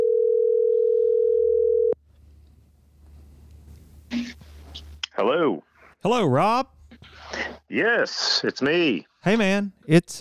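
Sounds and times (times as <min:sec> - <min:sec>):
telephone dial tone: 0:00.0 - 0:02.0
speech: 0:05.2 - 0:06.8, 0:07.7 - 0:10.1.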